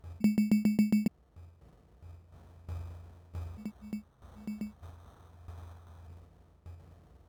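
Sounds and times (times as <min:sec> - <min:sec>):
zone ambience: 0:00.2 - 0:01.1, 0:03.6 - 0:04.7.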